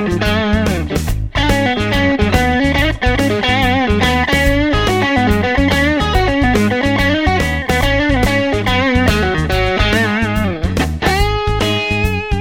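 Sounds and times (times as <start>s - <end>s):
crunchy electric guitar through mid pickups: 0.0s - 12.4s.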